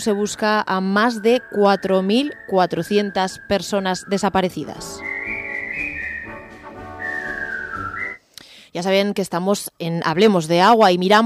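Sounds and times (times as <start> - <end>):
speech: 0.0 - 5.2, 8.7 - 11.2
whistled march melody: 1.0 - 8.2.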